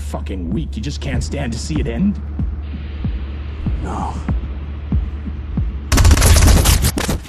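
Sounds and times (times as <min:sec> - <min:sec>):
speech: 0:00.3 - 0:02.4, 0:03.8 - 0:04.4
automatic gunfire: 0:05.9 - 0:07.0.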